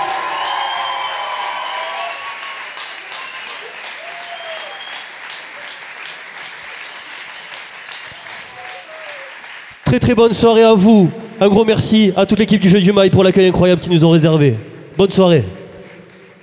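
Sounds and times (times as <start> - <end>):
audience whoops and shouts: 0.0 - 5.1
audience clapping for performers at the end of a show: 0.0 - 12.8, 14.3 - 16.4
speech: 9.9 - 15.6.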